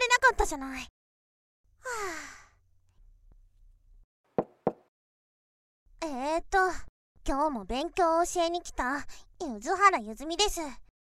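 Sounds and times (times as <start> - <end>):
speech: 0.4 - 1.0, 1.8 - 2.4, 6.0 - 10.8
knocking on a door: 4.4 - 4.9.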